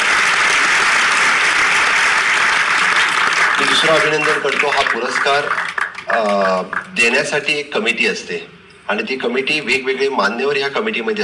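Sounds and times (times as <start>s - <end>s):
audience applause at a Goa government award ceremony honouring an artist: 0.0s - 7.2s
speech: 3.8s - 11.2s.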